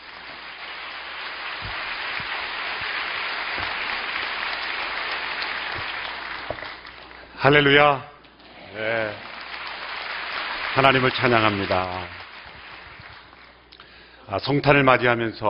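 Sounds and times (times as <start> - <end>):
audience applause: 0.0 - 7.3, 8.6 - 13.6
speech: 7.4 - 8.1, 10.8 - 12.2, 14.3 - 15.4.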